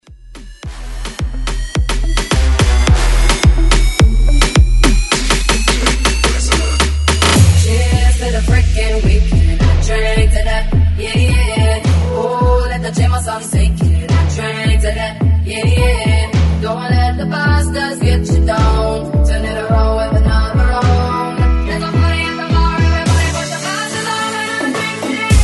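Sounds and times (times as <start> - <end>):
moombahton bootleg music: 0.0 - 25.4.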